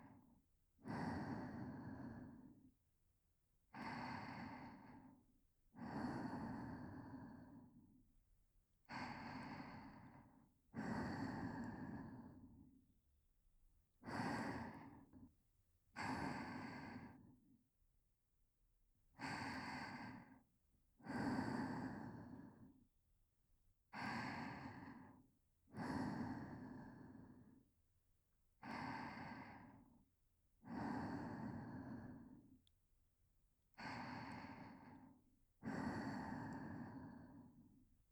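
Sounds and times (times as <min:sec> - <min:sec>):
whispered breathing: 0:00.0 - 0:02.8, 0:03.7 - 0:08.0, 0:08.9 - 0:12.8, 0:14.0 - 0:15.3, 0:16.0 - 0:17.5, 0:19.2 - 0:22.8, 0:24.0 - 0:27.7, 0:28.6 - 0:32.6, 0:33.7 - 0:37.9.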